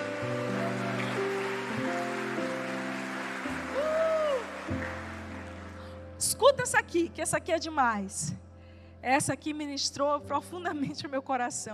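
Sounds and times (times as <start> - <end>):
audience applause: 0.0 - 6.0
speech: 6.4 - 8.4, 9.0 - 11.7.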